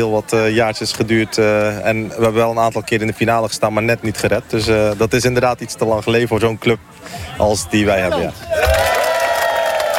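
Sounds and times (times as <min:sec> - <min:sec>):
speech: 0:00.0 - 0:08.7
crowd cheering and applause for the founder of a beach hockey club: 0:08.4 - 0:09.9.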